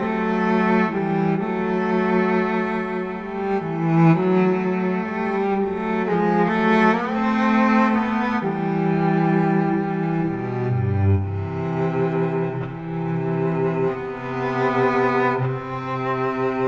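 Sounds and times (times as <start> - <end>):
modern and romantic cello: 0.0 - 16.6.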